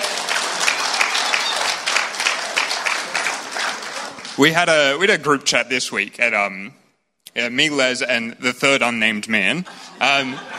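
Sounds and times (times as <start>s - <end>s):
audience applause: 0.0s - 4.5s
speech: 4.4s - 6.8s, 7.4s - 10.5s
laughter: 9.6s - 10.5s.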